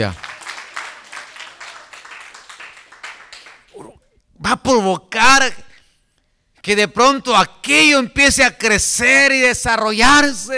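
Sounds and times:
speech: 0.0 - 0.2, 4.4 - 5.7, 6.6 - 10.5
audience clapping hands: 0.0 - 4.0.

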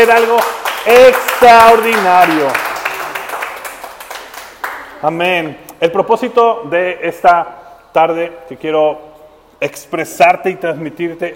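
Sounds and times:
speech: 0.0 - 2.7, 5.0 - 11.3
audience applause: 0.0 - 5.0.

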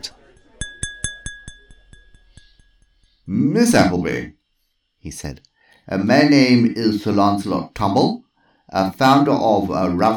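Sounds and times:
spoon tapping a glass: 0.4 - 3.0
high steady ring: 0.4 - 4.0
speech: 3.3 - 4.4, 5.0 - 10.1.

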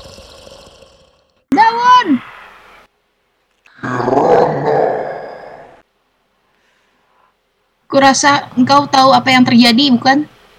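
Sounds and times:
growling in a forest: 0.0 - 1.4, 3.8 - 5.8
speech: 7.9 - 10.3.

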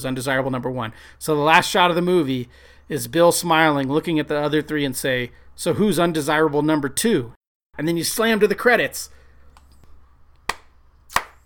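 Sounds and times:
speech: 0.0 - 9.2
single person clapping: 10.4 - 11.4.

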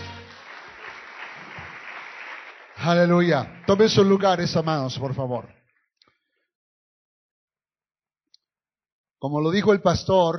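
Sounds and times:
audience clapping hands: 0.0 - 5.8
speech: 2.8 - 5.6, 9.2 - 10.3.

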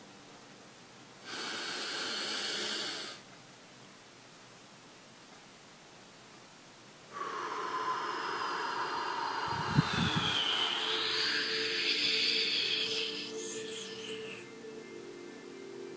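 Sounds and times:
slow breathing demonstration: 1.2 - 3.2, 7.1 - 14.8.

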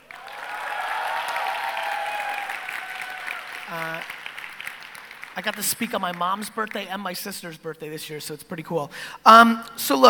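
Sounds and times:
audience applause: 0.0 - 5.7
speech: 3.7 - 4.2, 5.4 - 10.0.

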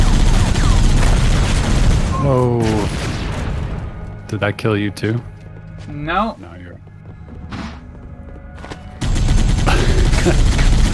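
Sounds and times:
video game gunfire: 0.0 - 3.8, 9.0 - 10.9
speech: 4.3 - 6.9, 10.2 - 10.6.

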